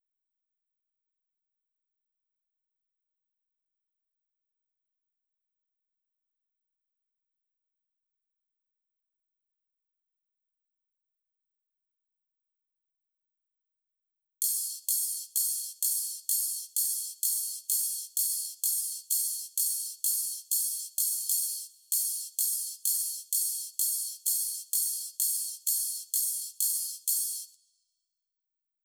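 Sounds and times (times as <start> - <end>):
drum loop: 14.4 - 27.6
ride cymbal: 14.4 - 27.6.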